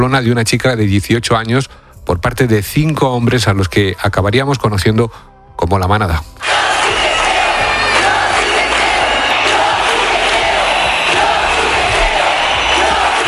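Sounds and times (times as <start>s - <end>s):
speech: 0.0s - 6.7s
street protest crowd chanting a slogan: 6.4s - 13.2s.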